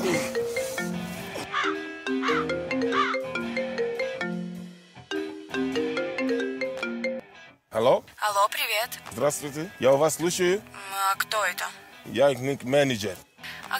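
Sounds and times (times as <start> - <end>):
phone ringing with a melodic electronic ringtone: 0.0 - 7.3
speech: 7.8 - 13.7.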